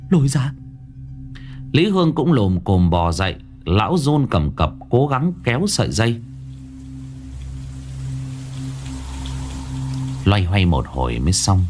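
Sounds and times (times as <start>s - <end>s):
speech: 0.1s - 0.6s, 1.7s - 6.3s, 10.2s - 11.6s
constant low humming drone: 5.2s - 11.6s
steady rain: 5.2s - 11.6s.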